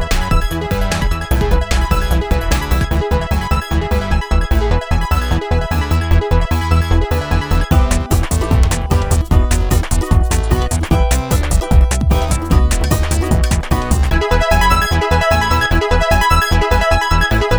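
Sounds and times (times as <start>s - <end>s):
American techno music: 0.0s - 17.5s.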